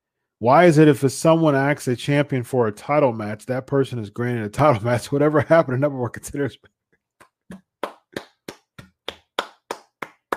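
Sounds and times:
speech: 0:00.4 - 0:06.8
round of applause: 0:07.8 - 0:10.3.

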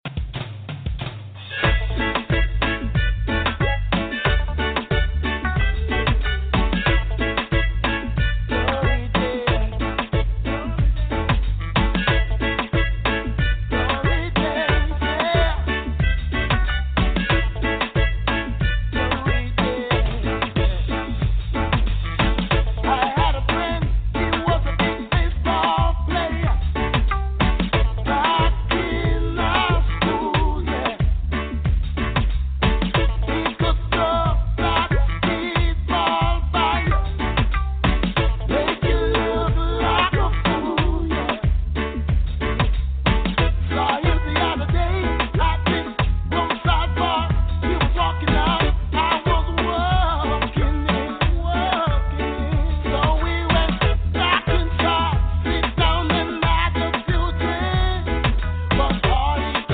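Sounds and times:
reggae music: 0:00.0 - 0:59.7.

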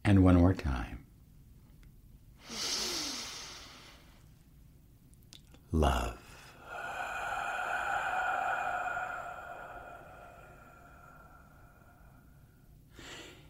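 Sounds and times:
speech: 0:00.1 - 0:01.0, 0:05.7 - 0:06.2
breath blown out: 0:02.4 - 0:04.0, 0:06.3 - 0:13.4
soft sustained tone: 0:06.4 - 0:12.8.

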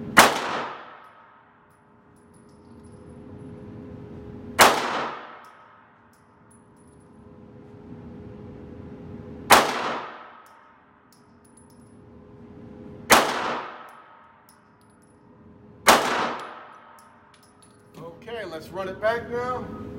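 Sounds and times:
pistol gunshots fired at a target 75 feet away: 0:00.2 - 0:01.3, 0:04.6 - 0:05.8, 0:09.5 - 0:10.6, 0:13.1 - 0:14.2, 0:15.8 - 0:17.0
speech: 0:18.5 - 0:19.8.

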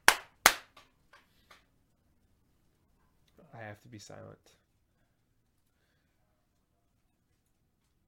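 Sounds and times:
hand claps: 0:00.0 - 0:00.9
speech: 0:03.6 - 0:04.6.

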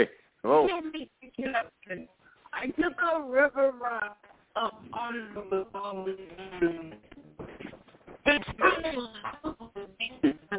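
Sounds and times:
speech: 0:00.0 - 0:02.1, 0:03.0 - 0:06.8
phone connection breaking up: 0:04.2 - 0:10.5.

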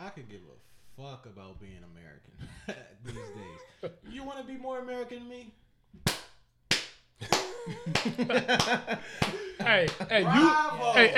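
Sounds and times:
speech: 0:00.2 - 0:06.1, 0:07.2 - 0:11.1
laughter: 0:02.4 - 0:04.1, 0:07.2 - 0:11.1
hand clapping: 0:06.0 - 0:10.2.

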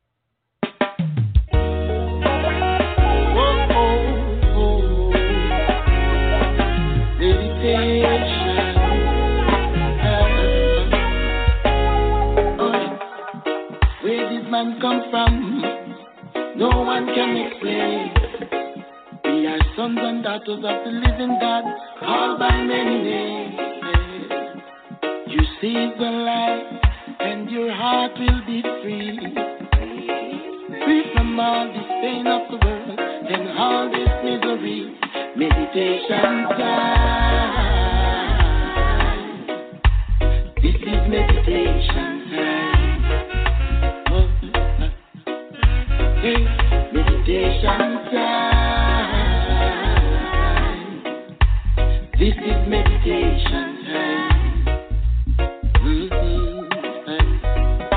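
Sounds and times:
reggae music: 0:00.6 - 0:57.9.

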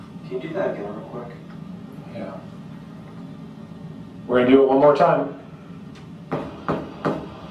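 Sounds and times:
speech: 0:00.3 - 0:01.5, 0:02.2 - 0:02.5, 0:04.3 - 0:05.4
knocking: 0:06.3 - 0:07.4.

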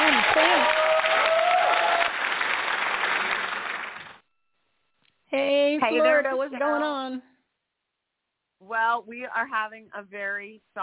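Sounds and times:
round of applause: 0:00.0 - 0:04.2
speech: 0:05.9 - 0:07.3, 0:08.6 - 0:10.8.

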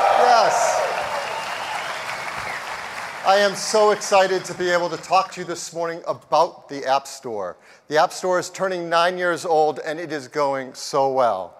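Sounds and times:
audience applause: 0:00.0 - 0:05.1
speech: 0:03.2 - 0:11.5.

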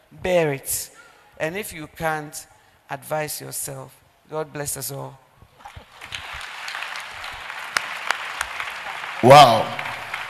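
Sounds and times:
speech: 0:00.2 - 0:05.2, 0:09.2 - 0:09.8
audience applause: 0:05.9 - 0:10.2.

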